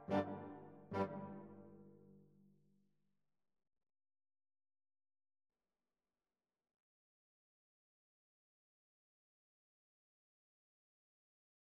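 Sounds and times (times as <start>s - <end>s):
clarinet piece: 0.0s - 1.8s.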